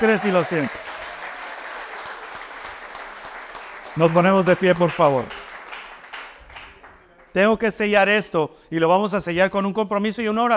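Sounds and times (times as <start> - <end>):
speech: 0.0 - 0.9, 4.0 - 5.4, 7.4 - 10.5
audience applause: 0.0 - 7.3.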